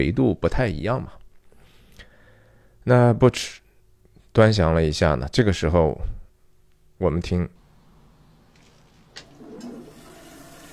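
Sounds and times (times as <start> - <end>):
speech: 0.0 - 1.2, 2.8 - 3.6, 4.4 - 6.2, 7.0 - 7.6
toilet flushing: 9.2 - 10.7.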